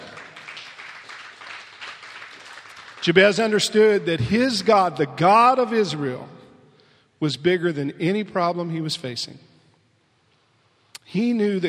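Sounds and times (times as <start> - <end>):
audience clapping: 0.0 - 4.0
speech: 3.0 - 6.4, 7.2 - 9.5, 11.1 - 11.6.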